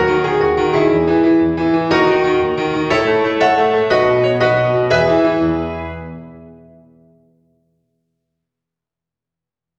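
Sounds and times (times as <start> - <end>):
children's songs on piano: 0.0 - 6.9.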